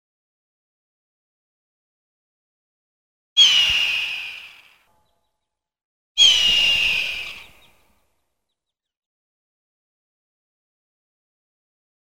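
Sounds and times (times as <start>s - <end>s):
hawk giving harsh hoarse screams: 3.4s - 4.9s, 6.2s - 7.8s.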